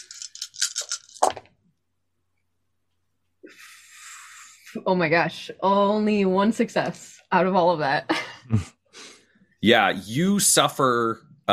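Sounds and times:
dice rattling and clattering: 0.0 - 1.4
speech: 4.8 - 8.8, 9.6 - 11.5.

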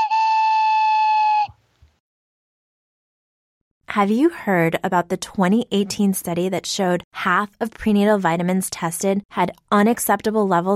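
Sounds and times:
train whistle blast with bright harmonic-rich tone: 0.0 - 1.6
speech: 3.9 - 10.7.

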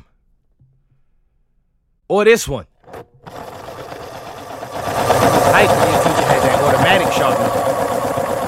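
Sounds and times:
speech: 2.1 - 3.4, 5.5 - 6.0
electric pencil sharpener sharpening a pencil: 2.9 - 8.4.

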